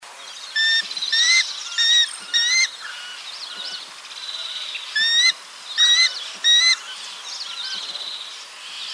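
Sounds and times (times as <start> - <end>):
spot-winged falconet calling: 0.6 - 3.8, 4.9 - 7.9.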